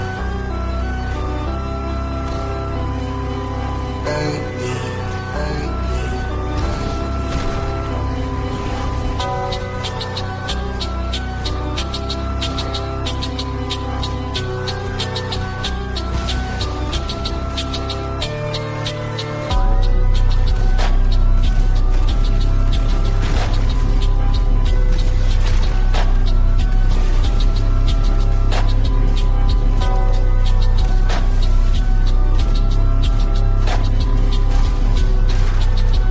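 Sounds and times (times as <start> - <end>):
phonk music: 0.1 - 36.0.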